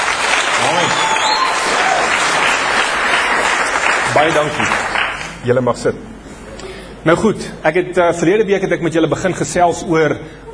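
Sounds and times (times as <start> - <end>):
crowd applauding: 0.0 - 5.4
speech: 4.2 - 6.2, 7.0 - 10.5.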